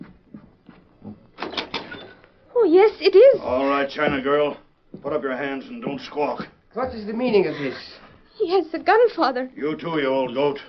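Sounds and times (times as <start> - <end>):
door opening: 1.4 - 2.3
speech: 2.7 - 10.6.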